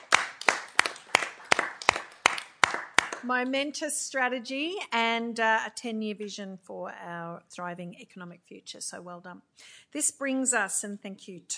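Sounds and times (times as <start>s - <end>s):
council meeting clapping for a carried motion: 0.0s - 3.6s
speech: 3.2s - 11.5s.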